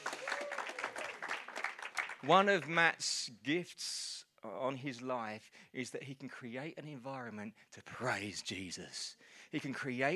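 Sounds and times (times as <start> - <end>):
audience applause: 0.0 - 2.3
speech: 2.2 - 10.1.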